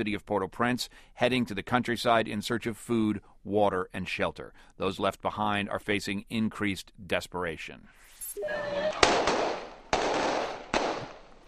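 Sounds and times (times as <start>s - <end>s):
speech: 0.0s - 9.3s
whistle-like tone: 8.1s - 9.0s
loud sharp bangs as police disperse a crowd: 8.9s - 11.4s.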